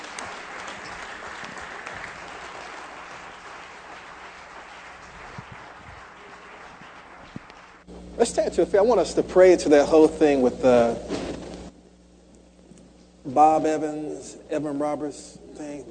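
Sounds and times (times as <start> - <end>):
audience clapping hands: 0.0 - 7.9
speech: 8.2 - 11.2, 13.4 - 15.8.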